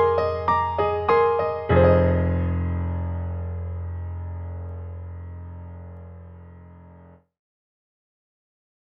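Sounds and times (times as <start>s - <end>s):
classic grand piano: 0.0s - 7.2s.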